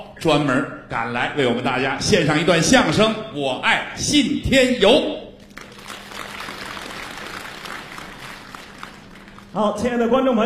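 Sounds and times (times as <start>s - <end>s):
speech: 0.2s - 5.2s, 9.5s - 10.4s
audience applause: 5.5s - 9.7s.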